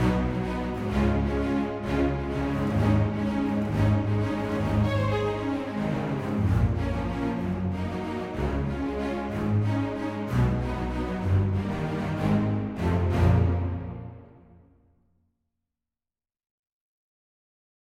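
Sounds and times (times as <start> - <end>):
film score soundscape in a minor key: 0.0 - 15.2.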